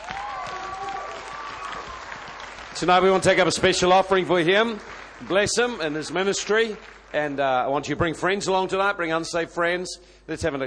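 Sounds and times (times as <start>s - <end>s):
faint cheering voices: 0.0s - 2.3s
audience clapping: 0.0s - 8.6s
speech: 2.8s - 10.6s.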